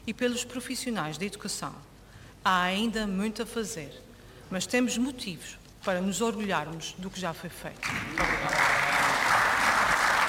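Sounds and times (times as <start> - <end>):
speech: 0.0 - 8.8
applause from regional assembly parliament benches: 7.8 - 10.2.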